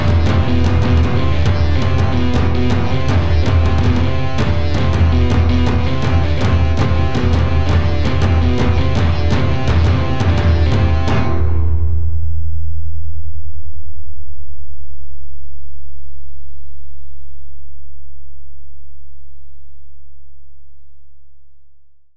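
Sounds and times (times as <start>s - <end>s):
street drum band: 0.0s - 11.4s
overdriven electric guitar: 0.0s - 12.0s.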